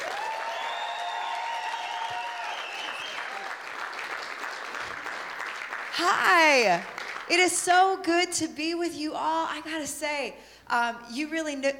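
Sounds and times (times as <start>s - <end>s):
audience applause welcoming a speaker to the stage: 0.0s - 7.3s
speech: 6.0s - 11.7s.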